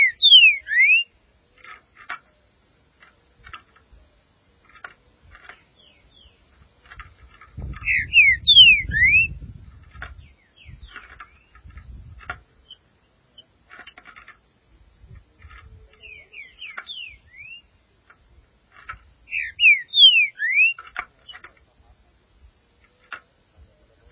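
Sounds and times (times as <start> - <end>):
Green-winged saltator delivering swooping whistles: 0.0 - 1.1, 7.8 - 9.4, 19.3 - 20.8.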